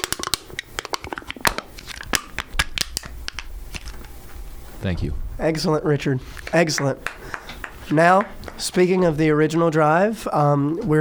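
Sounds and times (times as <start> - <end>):
empty soda can being crushed by hand: 0.0 - 4.2
speech: 4.8 - 7.2, 7.9 - 10.9.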